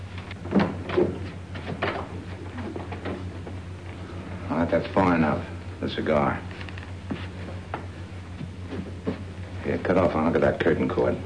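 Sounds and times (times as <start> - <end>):
closet door being opened: 0.0 - 3.5
speech: 1.0 - 1.2, 4.7 - 6.6, 9.7 - 11.2.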